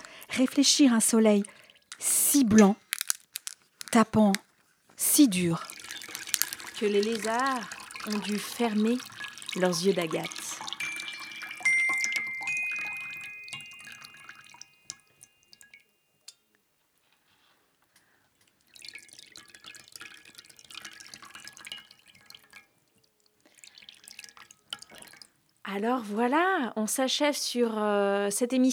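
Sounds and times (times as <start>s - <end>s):
spring water dripping: 0.0s - 16.7s, 18.0s - 25.8s
speech: 0.4s - 2.8s, 3.9s - 4.4s, 5.0s - 5.7s, 6.8s - 10.4s, 25.8s - 28.7s.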